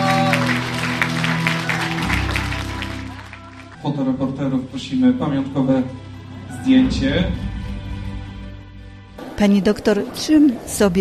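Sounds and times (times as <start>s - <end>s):
audience applause: 0.0s - 3.9s
speech: 4.0s - 7.5s, 9.4s - 10.9s.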